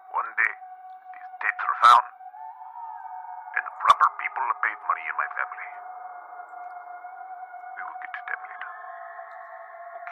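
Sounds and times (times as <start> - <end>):
speech: 1.9 - 2.1
blood-curdling howling: 2.1 - 10.1.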